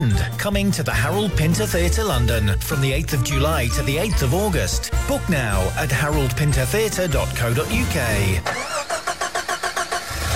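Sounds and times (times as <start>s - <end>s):
speech: 0.0s - 8.7s
car engine starting: 5.9s - 10.3s.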